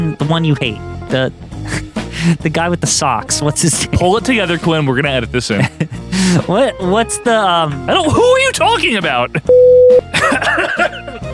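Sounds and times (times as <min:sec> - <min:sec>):
speech: 0:00.2 - 0:11.2
laughter: 0:05.5 - 0:06.5, 0:10.1 - 0:11.3
cough: 0:10.2 - 0:10.9.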